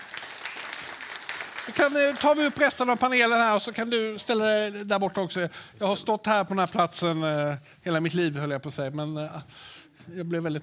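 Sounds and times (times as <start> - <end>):
audience applause: 0.0 - 3.3
speech: 1.7 - 10.6.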